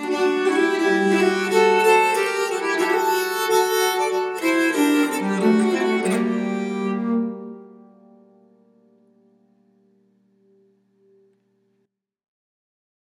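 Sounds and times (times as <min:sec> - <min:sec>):
nyckelharpa playing a polska: 0:00.0 - 0:08.9.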